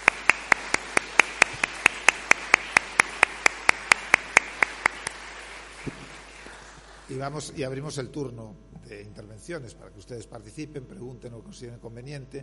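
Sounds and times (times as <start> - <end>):
audience applause after a lecture: 0.0 - 7.1
speech: 7.1 - 12.4.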